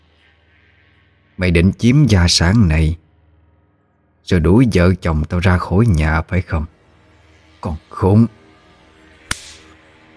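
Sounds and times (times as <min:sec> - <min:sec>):
speech: 0:01.4 - 0:03.0, 0:04.3 - 0:06.8, 0:07.6 - 0:08.4
hard slap across the face: 0:09.3 - 0:09.6.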